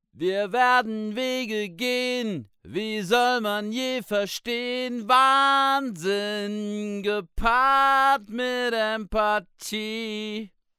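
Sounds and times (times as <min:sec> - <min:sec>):
vocals: 0:00.1 - 0:10.7.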